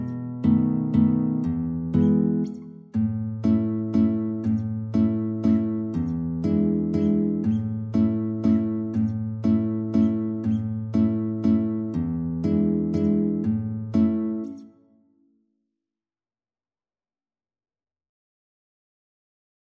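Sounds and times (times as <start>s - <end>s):
guitar duet: 0.0s - 15.0s.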